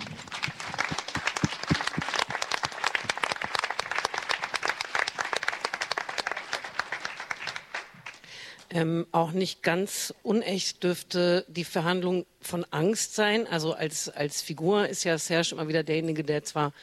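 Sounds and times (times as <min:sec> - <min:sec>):
audience applause: 0:00.0 - 0:08.2
speech: 0:08.8 - 0:16.8.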